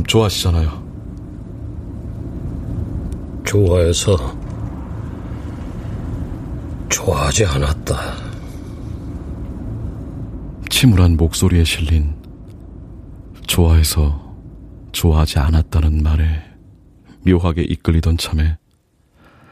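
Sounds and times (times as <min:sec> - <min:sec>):
speech: 0:00.0 - 0:00.8, 0:03.5 - 0:04.4, 0:06.9 - 0:08.2, 0:10.8 - 0:12.2, 0:13.5 - 0:14.2, 0:14.9 - 0:16.5, 0:17.2 - 0:18.6
car driving along a road: 0:00.0 - 0:15.0.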